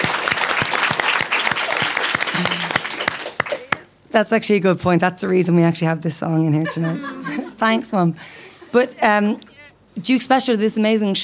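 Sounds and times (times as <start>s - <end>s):
audience clapping: 0.0s - 3.9s
laughter: 2.2s - 3.9s, 6.5s - 9.3s
speech: 4.2s - 11.2s.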